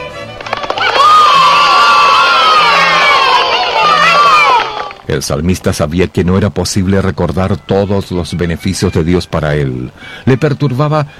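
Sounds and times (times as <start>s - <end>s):
crowd bursting into cheers: 0.0s - 5.1s
speech: 5.1s - 11.1s.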